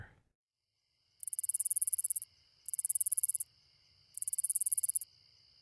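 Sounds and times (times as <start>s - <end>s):
round-winged katydid rattling buzzes: 1.2s - 3.5s, 4.1s - 5.1s.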